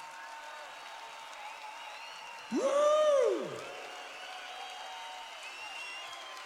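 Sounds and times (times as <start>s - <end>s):
audience applause: 0.0s - 6.4s
loud tonal whoop: 2.5s - 4.6s.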